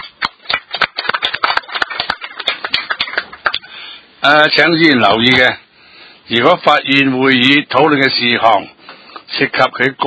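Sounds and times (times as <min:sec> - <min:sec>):
applause in a council meeting: 0:00.0 - 0:03.7
speech: 0:04.2 - 0:05.6, 0:06.3 - 0:10.0.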